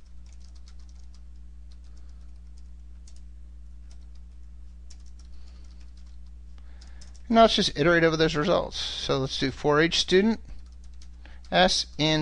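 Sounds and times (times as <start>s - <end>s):
typing a query on a computer keyboard: 0.0s - 7.3s, 10.4s - 12.1s
low electrical hum: 0.0s - 12.2s
speech: 7.3s - 10.5s, 11.5s - 12.2s.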